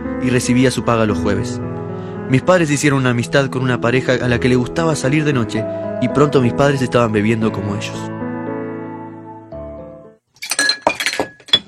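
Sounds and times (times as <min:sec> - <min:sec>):
speech: 0:00.2 - 0:01.7, 0:02.3 - 0:08.2
glass whisky bottles clinking: 0:10.4 - 0:11.6.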